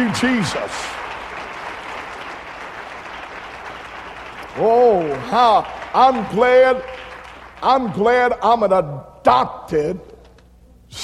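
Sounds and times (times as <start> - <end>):
audience clapping: 0.0 - 8.2
speech: 0.1 - 1.0, 4.6 - 7.0, 7.6 - 10.1.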